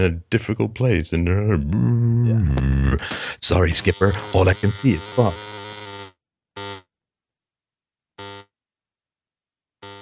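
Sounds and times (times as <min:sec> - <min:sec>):
speech: 0:00.0 - 0:05.6
Skype call notification buzzing: 0:03.6 - 0:06.8.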